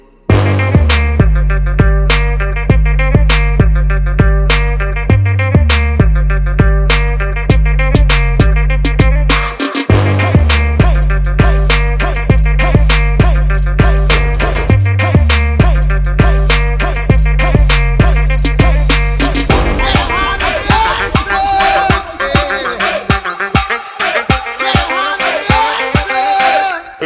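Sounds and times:
music beat: 0:00.0 - 0:26.9.

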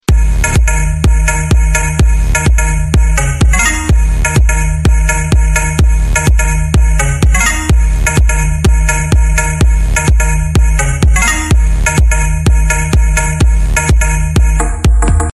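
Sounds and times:
trance massage music: 0:00.0 - 0:15.3.

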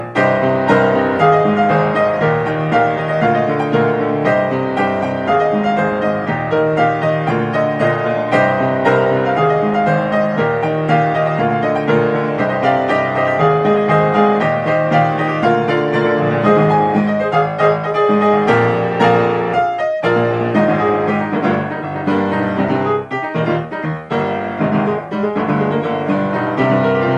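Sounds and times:
piano: 0:00.0 - 0:27.1.

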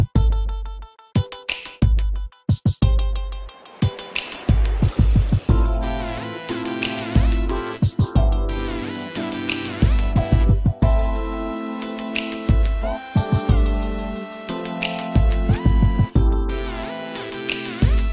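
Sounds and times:
sexy R&B music: 0:00.0 - 0:18.1.

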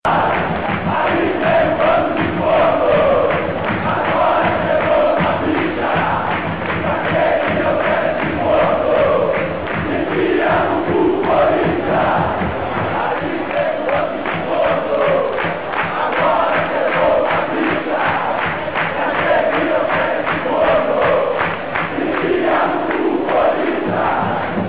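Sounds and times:
Flamengo football fans cheering: 0:00.0 - 0:24.6.

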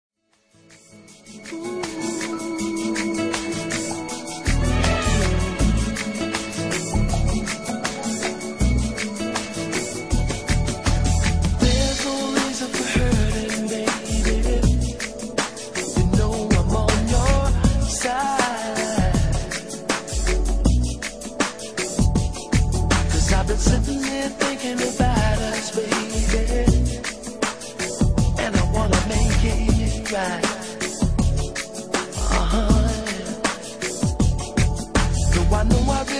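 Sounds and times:
lovers rock reggae music: 0:00.6 - 0:36.1.

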